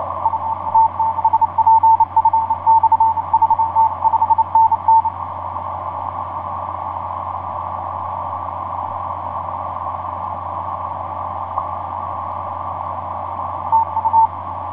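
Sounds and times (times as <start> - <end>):
morse code signal on the 20m band: 0.2 - 5.2, 13.7 - 14.4.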